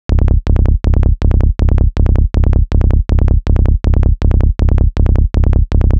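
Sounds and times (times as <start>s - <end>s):
psytrance bass: 0.1s - 5.9s.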